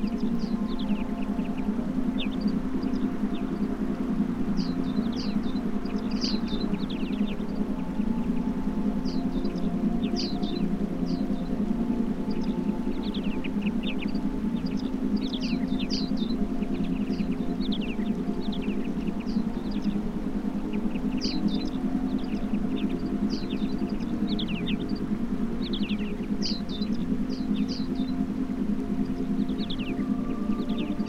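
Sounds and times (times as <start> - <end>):
forest sounds for meditation: 0.0 - 31.0.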